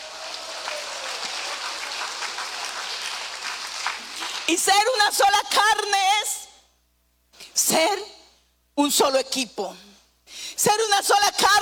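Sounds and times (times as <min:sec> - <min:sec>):
audience clapping: 0:00.0 - 0:04.7
speech: 0:04.5 - 0:06.3, 0:07.7 - 0:08.2, 0:08.8 - 0:09.9, 0:10.6 - 0:11.5.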